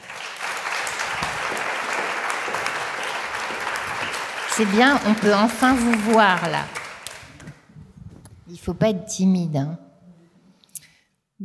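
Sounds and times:
audience applause: 0:00.0 - 0:07.6
speech: 0:04.6 - 0:06.8, 0:08.5 - 0:09.8.

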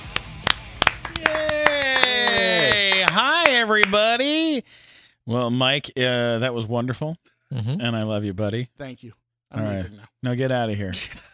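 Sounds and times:
comedy show audience clapping: 0:00.0 - 0:04.1
speech: 0:03.2 - 0:11.3.

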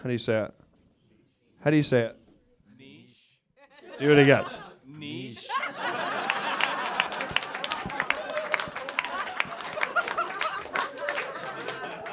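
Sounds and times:
speech: 0:00.0 - 0:00.6, 0:01.6 - 0:02.2, 0:04.0 - 0:06.1
laughter: 0:03.6 - 0:12.1
audience applause: 0:05.8 - 0:12.1.

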